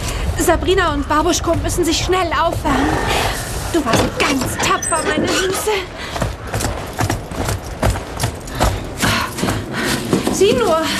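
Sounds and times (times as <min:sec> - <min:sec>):
dull rumbling background: 0:00.0 - 0:10.9
speech: 0:00.4 - 0:06.2, 0:10.4 - 0:10.9
horses' hooves clopping walking into the stable: 0:01.1 - 0:10.9.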